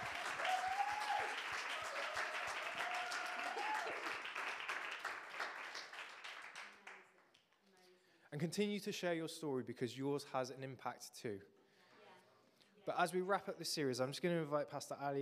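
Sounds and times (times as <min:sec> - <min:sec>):
crowd applauding: 0:00.0 - 0:07.4
speech: 0:08.4 - 0:11.6, 0:12.8 - 0:15.2.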